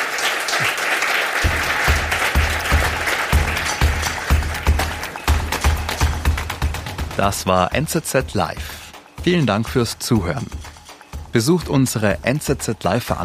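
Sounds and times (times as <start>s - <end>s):
audience applause: 0.0s - 6.9s
speech: 7.2s - 10.6s, 11.3s - 13.2s.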